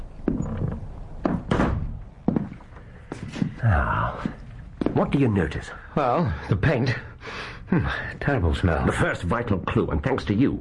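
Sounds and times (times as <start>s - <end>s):
door closing: 0.2s - 2.1s
speech: 3.6s - 4.4s, 5.0s - 10.6s.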